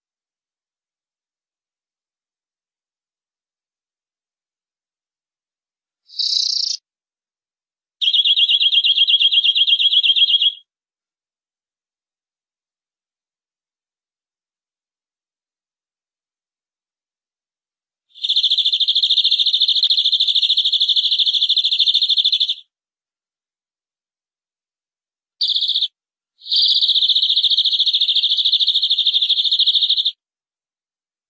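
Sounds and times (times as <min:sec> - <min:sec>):
canary trilling: 0:06.1 - 0:06.8, 0:08.0 - 0:10.6, 0:18.2 - 0:22.6, 0:25.4 - 0:25.9, 0:26.5 - 0:30.1.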